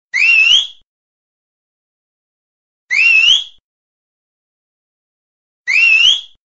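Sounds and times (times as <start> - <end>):
whistling: 0.2 - 0.8, 2.9 - 3.6, 5.7 - 6.4.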